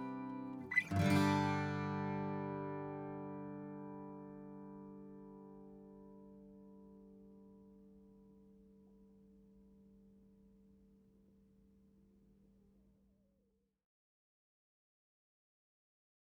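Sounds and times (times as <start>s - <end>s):
acoustic guitar: 0.0s - 10.2s.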